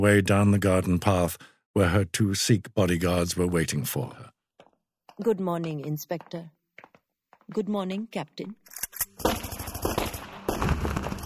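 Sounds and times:
speech: 0.0 - 4.3, 5.2 - 6.6, 7.5 - 9.5
submachine gun and pistol gunfire: 9.2 - 11.2.

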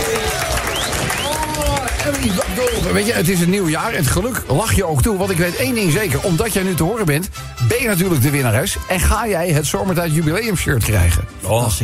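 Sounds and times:
applause: 0.0 - 3.8
speech: 2.1 - 11.8.

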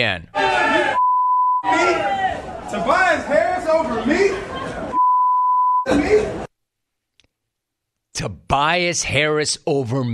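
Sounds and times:
speech: 0.0 - 0.6, 1.6 - 4.9, 8.2 - 10.1
mid-pitched censor bleeps: 1.0 - 1.7, 5.0 - 5.9.

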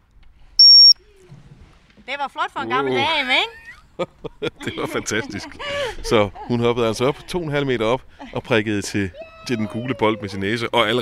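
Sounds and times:
trainer's whistle blown: 0.6 - 1.0
speech: 2.1 - 11.0
laughter: 3.4 - 7.5, 8.1 - 10.6.

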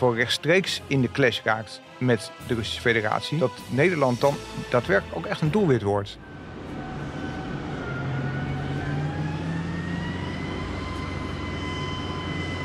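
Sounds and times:
speech: 0.0 - 6.3
armoured vehicle engine rumbling while rolling off a ship's gangway: 6.2 - 12.6
faint tonal whines rising in pitch: 6.2 - 12.6.

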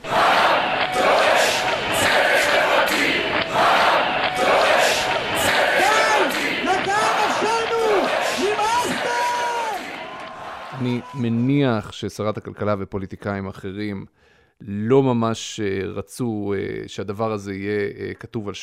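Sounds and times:
protest crowd chanting: 0.0 - 10.8
speech: 11.7 - 18.6.

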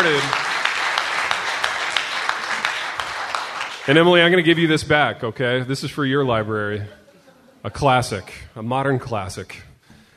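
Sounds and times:
crowd applauding: 0.0 - 4.6
speech: 3.9 - 7.0, 7.6 - 10.1.

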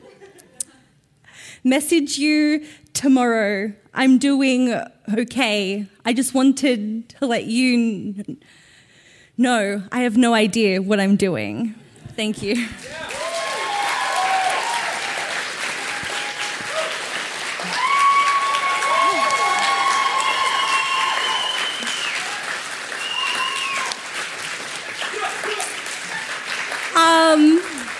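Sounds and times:
speech: 1.6 - 8.6, 9.4 - 13.1
audience applause: 12.5 - 27.9.

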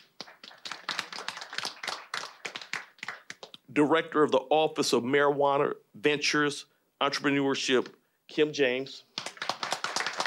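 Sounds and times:
scattered hand clapping from a small group: 0.0 - 3.6, 9.1 - 10.2
speech: 3.7 - 9.1.

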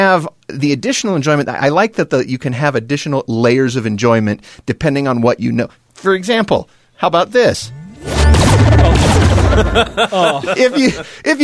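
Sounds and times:
speech: 0.1 - 11.4
original Star Trek missile-firing sound effect: 8.0 - 10.1
laughter: 8.8 - 11.2.

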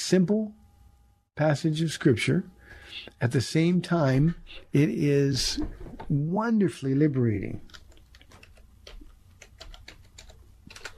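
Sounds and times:
speech: 0.1 - 0.6, 1.4 - 7.8
typing on a computer keyboard: 7.7 - 10.9.

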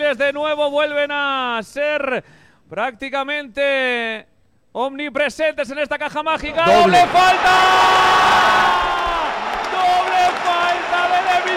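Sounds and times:
speech: 0.1 - 9.0
tennis crowd cheering and whooping at the end of a tennis match: 6.6 - 11.5.

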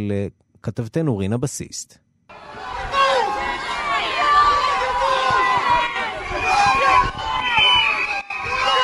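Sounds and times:
speech: 0.0 - 2.6
angry protesters shouting and cursing: 2.3 - 8.8.

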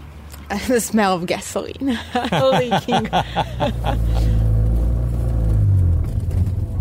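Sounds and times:
old 1970s-80s car engine rumbling: 0.0 - 6.8
speech: 0.5 - 4.3
laughter: 1.9 - 4.4.

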